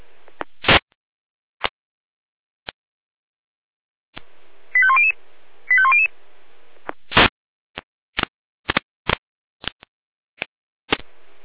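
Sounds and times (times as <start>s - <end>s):
radio clicks and pops: 0.2s - 0.9s, 6.8s - 9.9s, 10.9s - 11.1s
fire brigade radio alert tones: 4.8s - 6.1s.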